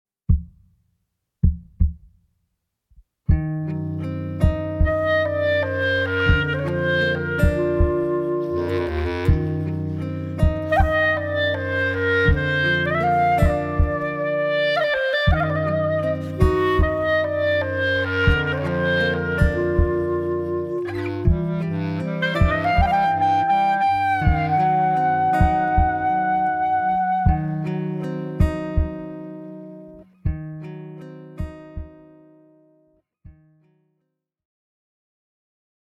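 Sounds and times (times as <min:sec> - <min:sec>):
clarinet outro: 0:03.7 - 0:30.1.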